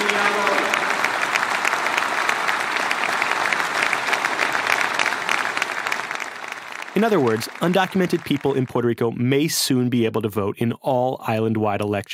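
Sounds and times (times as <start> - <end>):
crowd cheering: 0.0 - 9.0
speech: 7.0 - 12.1.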